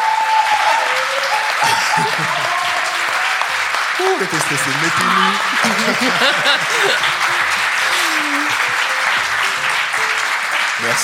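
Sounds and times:
faint voices and cheers: 0.0s - 11.0s
live crowd clapping: 0.0s - 11.0s
laughter: 1.4s - 10.0s
speech: 4.0s - 7.4s, 10.8s - 11.0s.

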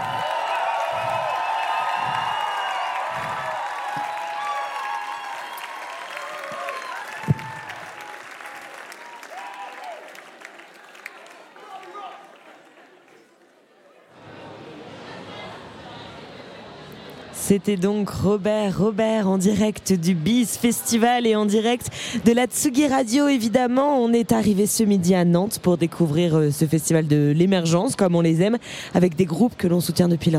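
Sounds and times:
festival crowd cheering, whooping and applauding: 0.0s - 13.5s
speech: 17.5s - 30.3s.

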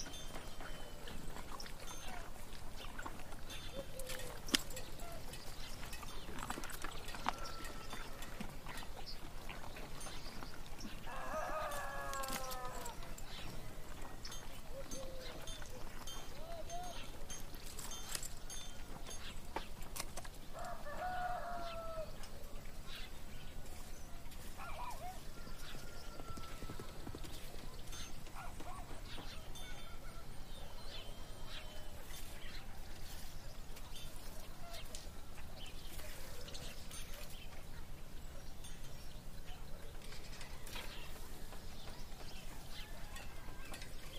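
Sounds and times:
birds singing and chattering: 0.0s - 44.1s
farm animals calling: 0.0s - 44.1s
town background noise: 0.0s - 44.1s
rooster-like cry: 11.1s - 13.2s, 20.6s - 22.1s.

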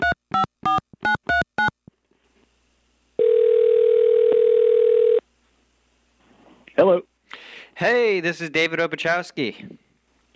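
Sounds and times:
telephone keypad beeps: 0.0s - 1.7s
telephone dial tone while calling: 3.2s - 5.2s
speech: 7.8s - 9.8s.

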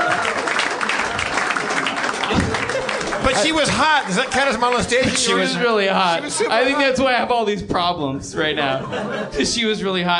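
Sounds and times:
audience applause: 0.0s - 5.6s
laughter: 0.8s - 7.2s, 8.6s - 9.8s
speech: 3.4s - 10.1s.

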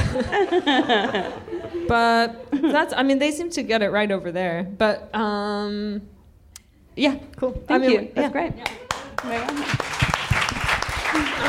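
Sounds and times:
laughter: 0.0s - 2.9s, 11.0s - 11.4s
speech: 0.2s - 6.1s, 7.0s - 10.1s
one person clapping hands: 8.6s - 11.4s.

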